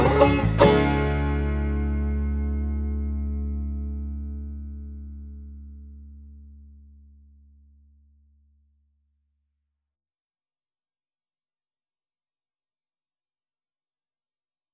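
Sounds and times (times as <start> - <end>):
banjo: 0.0 - 4.6.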